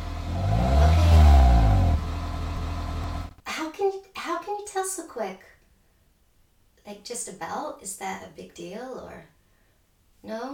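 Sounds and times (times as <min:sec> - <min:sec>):
car engine revving: 0:00.0 - 0:03.3
speech: 0:05.0 - 0:05.6, 0:06.8 - 0:09.3, 0:10.2 - 0:10.5.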